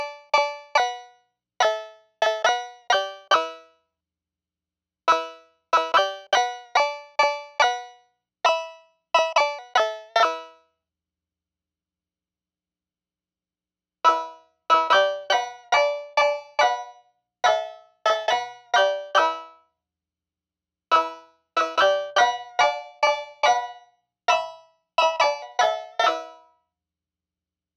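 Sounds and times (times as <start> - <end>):
oriental plucked strings: 0.0 - 3.7, 5.1 - 10.6, 14.1 - 19.6, 20.9 - 26.4.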